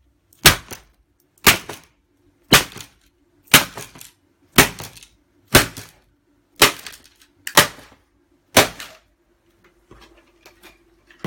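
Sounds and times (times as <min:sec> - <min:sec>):
occult board being smashed: 0:00.4 - 0:01.9, 0:02.5 - 0:06.0, 0:06.6 - 0:09.0.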